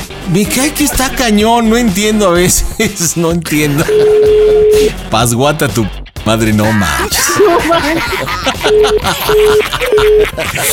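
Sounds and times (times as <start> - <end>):
speech: 0.3 - 10.7
unanswered phone call beeps as the call is forwarded: 3.8 - 5.0, 8.7 - 10.4
laughter: 6.7 - 10.7.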